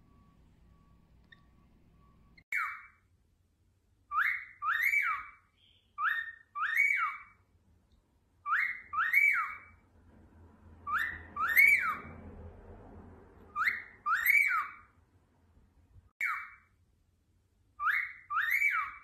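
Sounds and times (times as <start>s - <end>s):
cockatiel whistling: 0.0s - 3.0s, 4.1s - 7.4s, 8.4s - 9.8s, 10.8s - 12.2s, 13.5s - 14.9s, 16.2s - 16.7s, 17.8s - 19.0s
faint low hum: 0.0s - 18.8s.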